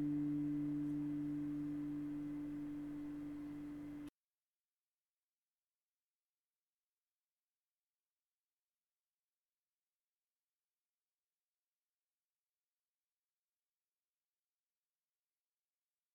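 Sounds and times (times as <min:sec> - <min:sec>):
electric guitar fourth string D plucked for tuning: 0:00.0 - 0:04.1.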